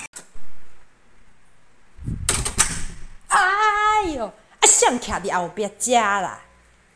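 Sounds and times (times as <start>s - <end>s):
door bursting open with a crash: 2.0s - 3.3s
speech: 4.1s - 6.5s.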